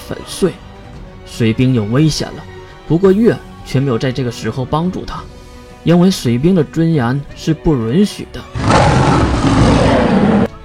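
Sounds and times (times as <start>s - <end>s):
speech: 0.1s - 0.7s, 1.3s - 8.9s
dragon roar: 8.6s - 10.6s.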